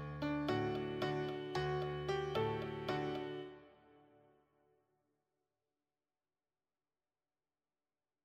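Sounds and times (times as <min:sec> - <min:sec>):
solo piano: 0:00.0 - 0:04.2.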